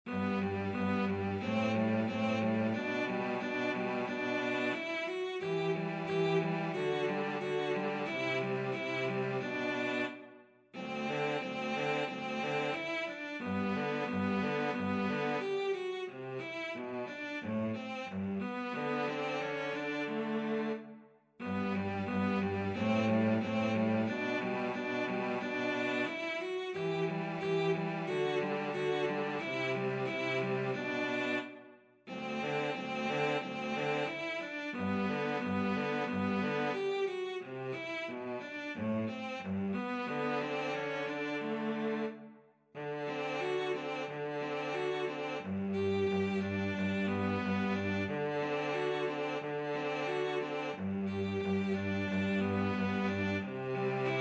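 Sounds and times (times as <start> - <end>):
cello duet: 0.0 - 54.1.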